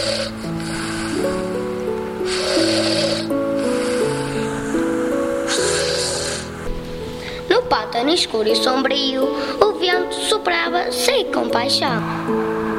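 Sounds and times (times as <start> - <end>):
snoring: 0.0 - 1.6, 2.2 - 6.7
speech: 8.0 - 12.6.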